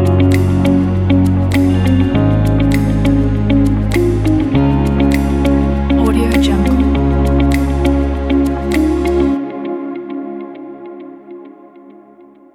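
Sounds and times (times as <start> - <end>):
upbeat motivational inspirational music: 0.0 - 9.4.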